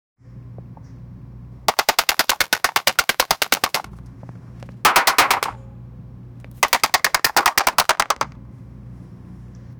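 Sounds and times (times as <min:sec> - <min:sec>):
many arrows hitting: 0:01.7 - 0:03.9, 0:04.9 - 0:05.6, 0:06.6 - 0:08.3.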